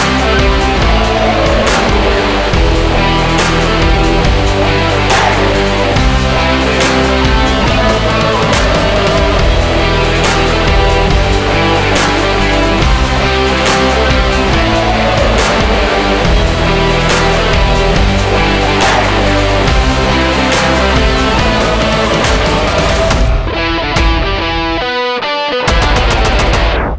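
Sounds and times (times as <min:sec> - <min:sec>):
epic sport rock trailer music: 0:00.0 - 0:26.9.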